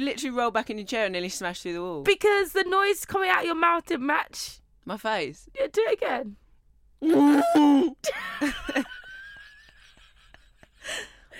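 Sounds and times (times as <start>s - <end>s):
speech: 0.0s - 6.4s, 7.0s - 9.0s
voice imitating a hiccup: 7.0s - 8.0s.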